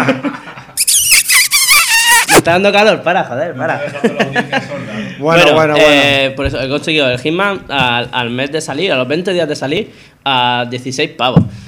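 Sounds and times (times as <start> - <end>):
speech: 0.1 - 0.3, 2.4 - 11.6
person whistling loudly: 0.8 - 2.4
laughter: 3.8 - 5.1.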